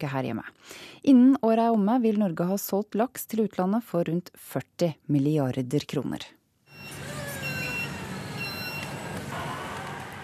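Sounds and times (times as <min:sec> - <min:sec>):
speech: 0:00.0 - 0:06.4
trucks at a fish wholesaler in Oslo: 0:06.8 - 0:10.2.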